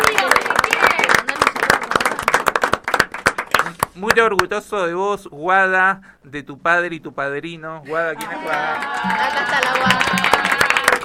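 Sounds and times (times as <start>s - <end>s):
audience applause: 0.0s - 3.8s, 8.2s - 11.0s
speech: 4.0s - 10.4s.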